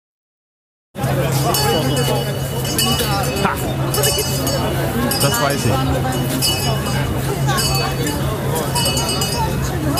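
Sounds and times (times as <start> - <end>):
dense crowd babble: 1.0 - 9.9
Christmas market bell announcing a passing tram: 1.3 - 9.9
speech: 5.3 - 8.8.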